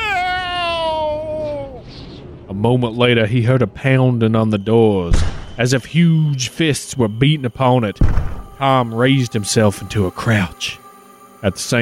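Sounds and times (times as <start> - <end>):
cat yowling: 0.0 - 1.8
speech: 2.6 - 10.8, 11.4 - 11.7.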